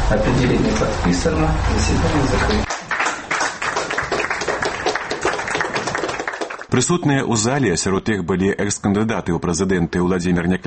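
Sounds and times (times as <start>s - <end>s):
speech: 0.1s - 2.7s, 6.7s - 10.6s
people applauding in a Belarusian courtroom after a court decision: 2.2s - 6.7s.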